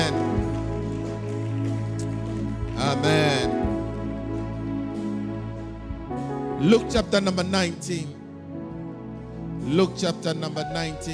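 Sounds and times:
audience clapping: 0:00.0 - 0:06.8
speech: 0:06.7 - 0:08.2, 0:09.7 - 0:11.1.

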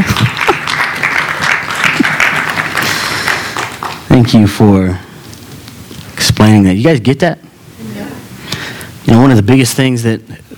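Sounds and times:
round of applause: 0:00.0 - 0:04.3
speech: 0:04.2 - 0:05.0, 0:06.4 - 0:07.4, 0:09.1 - 0:10.5.

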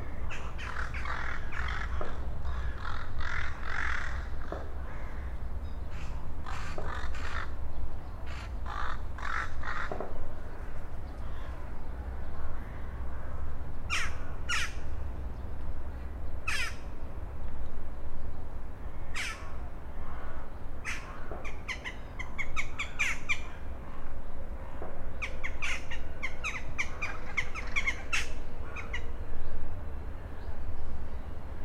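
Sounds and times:
steady low rumble: 0:00.0 - 0:31.6
rooks cawing over the Oder: 0:00.2 - 0:07.6, 0:08.3 - 0:10.1, 0:11.2 - 0:11.8, 0:12.4 - 0:14.8, 0:16.4 - 0:16.8, 0:18.9 - 0:24.1.

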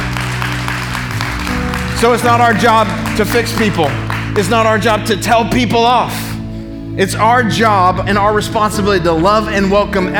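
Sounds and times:
audience clapping: 0:00.0 - 0:04.8
speech: 0:02.0 - 0:06.2, 0:06.9 - 0:10.1.

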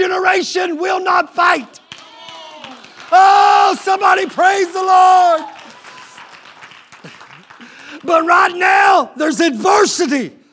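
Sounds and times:
speech: 0:00.2 - 0:01.8, 0:03.1 - 0:05.6, 0:07.9 - 0:10.4
church audience clapping: 0:01.8 - 0:08.6.

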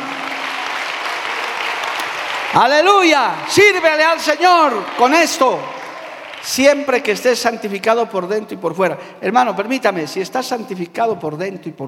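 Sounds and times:
audience applause: 0:00.0 - 0:07.5
speech: 0:02.5 - 0:05.8, 0:06.4 - 0:11.8.

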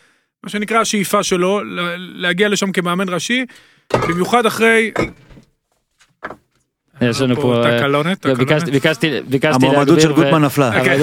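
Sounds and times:
speech: 0:00.5 - 0:05.2, 0:07.0 - 0:11.0
jerrycan falling over: 0:03.9 - 0:05.5.

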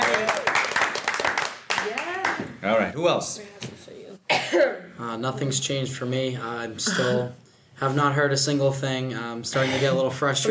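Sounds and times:
round of applause: 0:00.0 - 0:02.4
speech: 0:02.6 - 0:03.8, 0:04.5 - 0:10.4.

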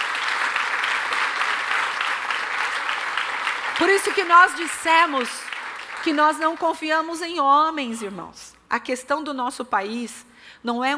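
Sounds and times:
audience applause: 0:00.0 - 0:06.7
speech: 0:03.8 - 0:10.9.

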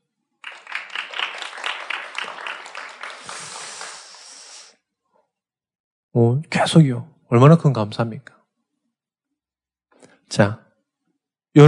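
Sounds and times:
audience applause: 0:00.4 - 0:04.5
speech: 0:06.2 - 0:08.4, 0:10.3 - 0:10.6.

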